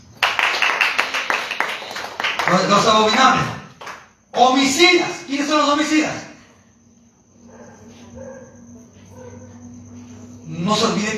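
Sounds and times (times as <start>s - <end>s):
audience clapping hands: 0.0s - 4.3s
speech: 2.5s - 3.6s, 4.4s - 6.3s.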